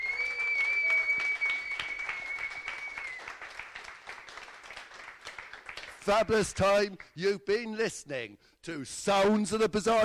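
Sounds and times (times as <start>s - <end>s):
round of applause: 0.0s - 7.2s
speech: 6.1s - 10.0s.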